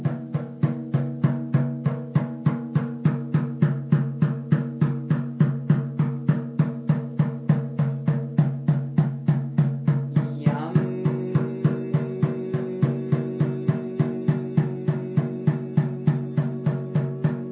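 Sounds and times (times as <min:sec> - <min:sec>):
grounding drum: 0:00.0 - 0:17.5.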